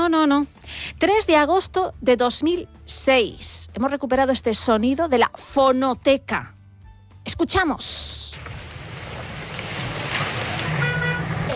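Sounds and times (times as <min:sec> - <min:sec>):
speech: 0:00.3 - 0:06.6, 0:07.2 - 0:08.5
crackling flames of a forest fire: 0:08.1 - 0:11.5
horn-like tone: 0:10.6 - 0:11.5.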